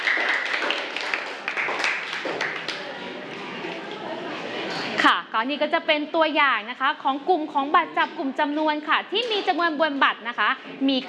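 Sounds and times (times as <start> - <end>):
classroom applause: 0.0 - 3.2
speech: 5.0 - 11.0.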